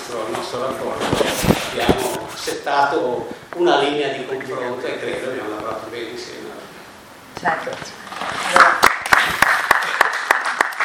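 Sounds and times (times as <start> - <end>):
speech: 0.1 - 6.7, 7.4 - 8.8
audience applause: 8.5 - 10.8.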